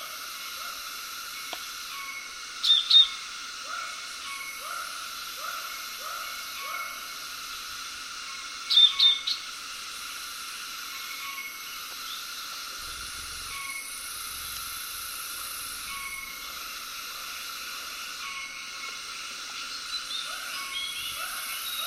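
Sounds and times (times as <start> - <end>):
tropical cicadas: 0.0 - 21.8
tropical frogs: 0.0 - 21.8.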